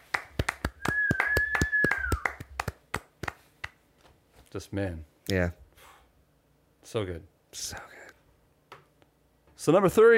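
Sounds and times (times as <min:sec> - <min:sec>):
applause: 0:00.0 - 0:03.8
speech: 0:04.5 - 0:05.6, 0:06.8 - 0:08.0, 0:09.6 - 0:10.1.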